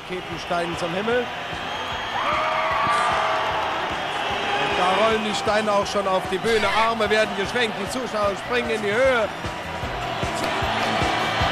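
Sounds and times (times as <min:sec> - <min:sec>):
concert crowd cheering in live radio recording: 0:00.0 - 0:11.5
speech: 0:00.1 - 0:02.4, 0:04.8 - 0:09.5
long shrill whistle or whoop: 0:01.6 - 0:05.2.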